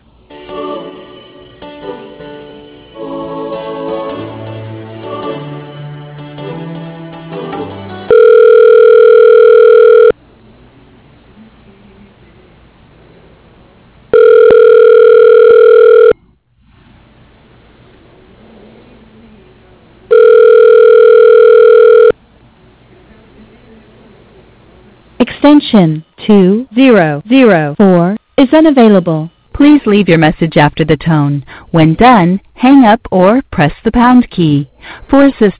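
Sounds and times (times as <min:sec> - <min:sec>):
telephone ringback tone as a call is transferred to voicemail: 0:08.1 - 0:10.1, 0:14.1 - 0:16.2, 0:20.1 - 0:22.1
speech: 0:25.5 - 0:27.8, 0:28.5 - 0:35.5.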